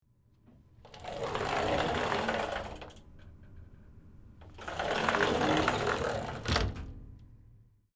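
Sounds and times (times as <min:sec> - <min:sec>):
glass shower or mirror closet door sliding open and closed: 0:00.8 - 0:03.7, 0:04.4 - 0:06.9.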